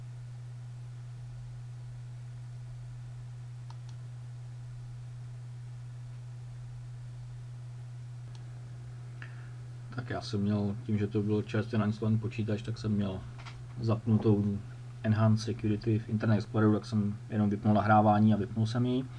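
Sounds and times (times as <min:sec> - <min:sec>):
low electrical hum and soft hiss: 0:00.0 - 0:19.1
computer mouse clicking: 0:03.6 - 0:04.0
speech: 0:09.9 - 0:19.1.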